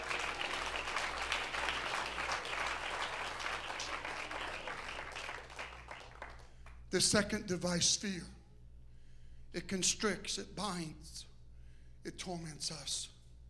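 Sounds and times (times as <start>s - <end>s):
audience clapping hands: 0.0s - 6.8s
speech: 6.9s - 8.4s, 9.6s - 11.3s, 12.0s - 13.1s.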